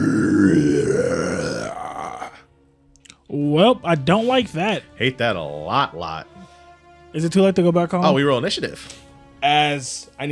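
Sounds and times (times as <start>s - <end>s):
voice imitating a monster's deep guttural growl: 0.0s - 2.4s
speech: 3.8s - 6.4s, 7.1s - 10.3s.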